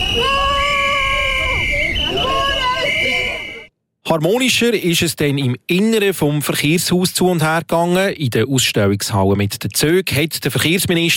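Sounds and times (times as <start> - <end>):
loud protesters demonstrating outdoors: 0.0 - 3.7
speech: 0.2 - 0.4, 4.1 - 11.1.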